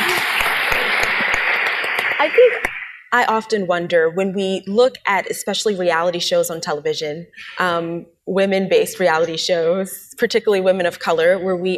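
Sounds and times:
audience clapping: 0:00.0 - 0:03.1
speech: 0:02.2 - 0:11.7.

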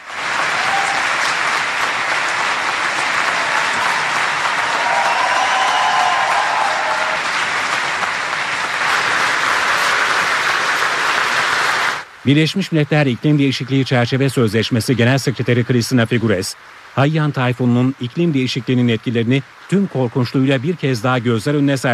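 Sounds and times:
large audience applause in conference hall: 0:00.0 - 0:12.1
speech: 0:12.2 - 0:21.9.

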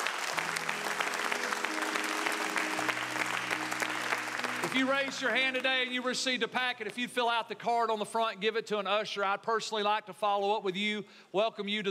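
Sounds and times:
audience applause: 0:00.0 - 0:06.0
speech: 0:04.7 - 0:11.8.

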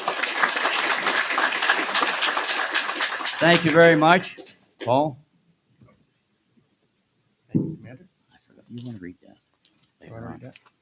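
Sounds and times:
audience applause: 0:00.0 - 0:04.5
speech: 0:03.4 - 0:05.2, 0:08.7 - 0:09.4, 0:10.0 - 0:10.8.

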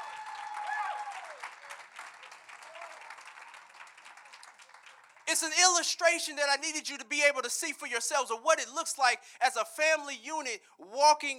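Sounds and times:
round of applause: 0:00.0 - 0:05.7
speech: 0:05.3 - 0:11.3.

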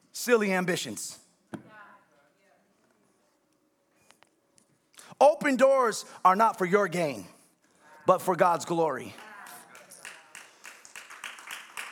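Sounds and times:
speech: 0:00.2 - 0:01.2, 0:05.2 - 0:07.4, 0:08.1 - 0:09.2
audience clapping: 0:09.0 - 0:11.9.

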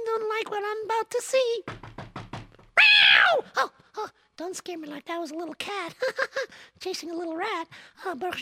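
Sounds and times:
speech: 0:00.4 - 0:01.8, 0:03.1 - 0:08.4
knocking on a back door: 0:01.6 - 0:02.8.

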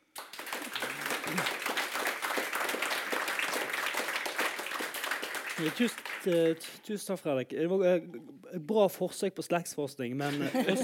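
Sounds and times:
audience applause: 0:00.0 - 0:06.8
speech: 0:05.6 - 0:10.8
laughter: 0:10.2 - 0:10.8.

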